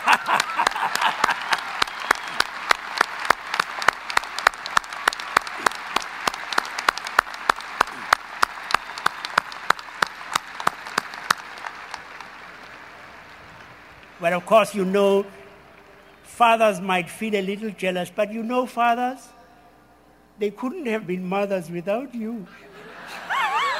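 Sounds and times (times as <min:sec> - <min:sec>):
laughter: 0:00.0 - 0:01.8, 0:22.5 - 0:23.7
audience clapping for mothers: 0:00.0 - 0:16.2
speech: 0:14.2 - 0:15.4, 0:16.4 - 0:19.4, 0:20.4 - 0:22.7.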